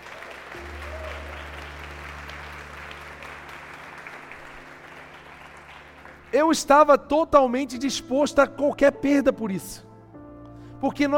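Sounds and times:
audience applauding: 0:00.0 - 0:06.8
speech: 0:06.3 - 0:09.9, 0:10.8 - 0:11.1.

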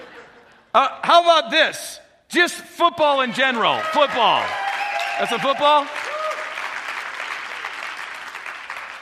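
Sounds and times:
speech: 0:00.8 - 0:04.6, 0:05.2 - 0:06.0
audience clapping: 0:03.4 - 0:09.0.

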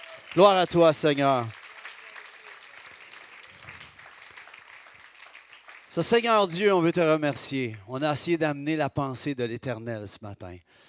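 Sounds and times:
church congregation clapping to acclaim the King during a morning service: 0:00.0 - 0:07.9
speech: 0:00.4 - 0:01.6, 0:06.0 - 0:10.8.

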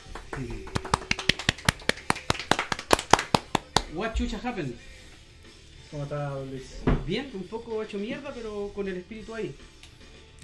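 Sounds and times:
applause: 0:00.0 - 0:03.9
speech: 0:00.4 - 0:00.8, 0:03.9 - 0:05.0, 0:05.9 - 0:09.8.

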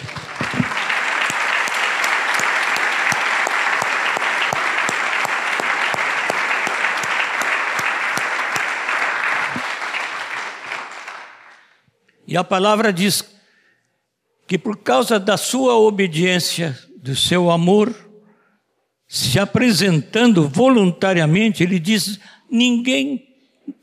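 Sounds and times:
audience applause: 0:00.0 - 0:11.7
speech: 0:12.3 - 0:13.3, 0:14.5 - 0:18.0, 0:19.1 - 0:23.8.

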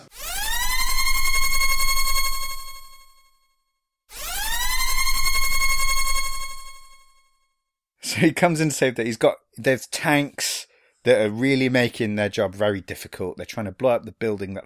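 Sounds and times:
spoiler klaxon siren sound effect: 0:00.0 - 0:03.4, 0:04.1 - 0:07.4
speech: 0:08.2 - 0:14.6.

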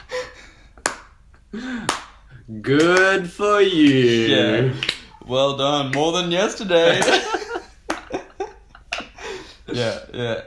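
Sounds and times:
sarcastic slow hand claps: 0:00.8 - 0:03.2, 0:03.8 - 0:05.1, 0:07.9 - 0:08.2
speech: 0:01.5 - 0:07.4, 0:09.7 - 0:10.4
laughter: 0:06.7 - 0:10.4.

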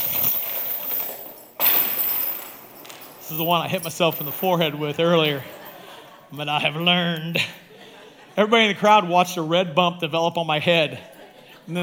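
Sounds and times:
metal chains rattling as they are handled: 0:00.0 - 0:07.5
speech: 0:03.3 - 0:05.6, 0:06.3 - 0:07.6, 0:08.4 - 0:11.1
laughter: 0:04.6 - 0:08.8.

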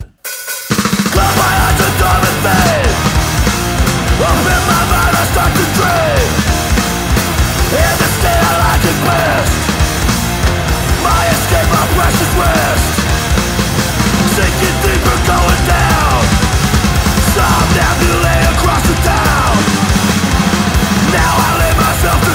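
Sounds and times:
hardcore punk song with distorted guitars, pounding drums and shouted vocals: 0:00.0 - 0:22.3.

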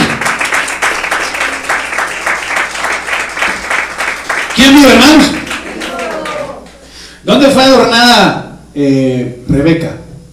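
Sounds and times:
audience clapping hands: 0:00.0 - 0:06.9
speech: 0:04.6 - 0:05.4, 0:07.4 - 0:10.0.

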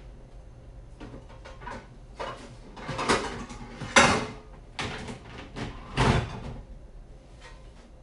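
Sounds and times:
utensils and containers clattering while making banana bread: 0:01.4 - 0:06.5.

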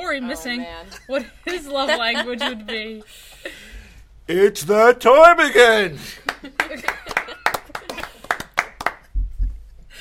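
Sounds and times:
speech: 0:00.1 - 0:03.6, 0:04.3 - 0:06.9
laughter: 0:00.9 - 0:03.6, 0:06.0 - 0:08.6
hand clapping: 0:06.2 - 0:09.2.

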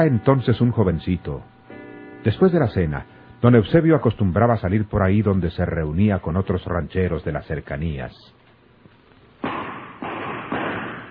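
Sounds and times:
speech: 0:00.0 - 0:01.5, 0:02.2 - 0:08.4
gunshots: 0:09.4 - 0:11.0.

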